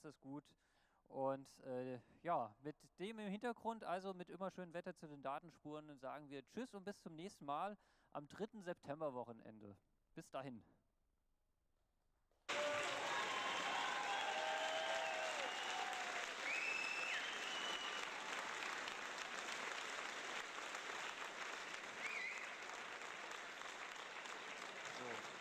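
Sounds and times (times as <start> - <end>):
speech: 0.0 - 10.8
whistles or cheers: 12.5 - 18.6, 21.9 - 22.8
audience applause: 12.5 - 25.3.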